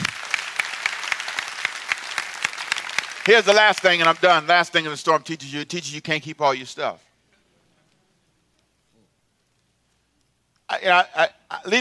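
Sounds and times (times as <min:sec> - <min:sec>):
scattered applause: 0:00.0 - 0:04.4
audience clapping hands in rhythm: 0:00.0 - 0:04.8
speech: 0:03.2 - 0:07.1, 0:10.8 - 0:11.7.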